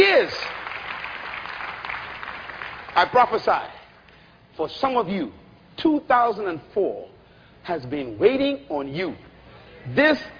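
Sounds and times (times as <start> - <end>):
audience clapping: 0.0 - 3.7
speech: 3.0 - 3.8, 4.6 - 10.3.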